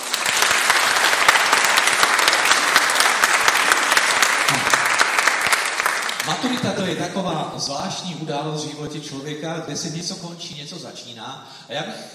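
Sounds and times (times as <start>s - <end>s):
audience applause: 0.0s - 7.2s
speech: 6.3s - 12.1s.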